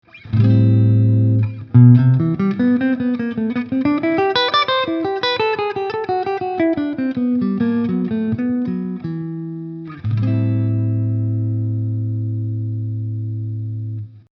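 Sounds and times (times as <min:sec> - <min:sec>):
PRS guitar neck pickup coil split clean: 0:00.0 - 0:14.2.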